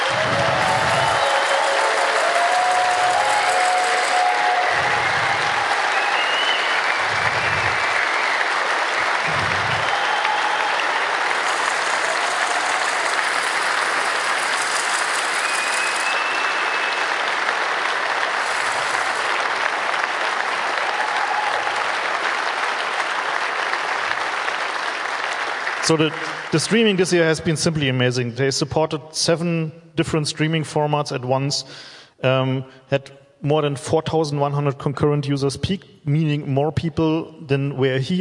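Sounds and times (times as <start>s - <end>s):
audience applause: 0.0s - 27.3s
low thumps: 9.2s - 10.0s
speech: 25.9s - 38.1s.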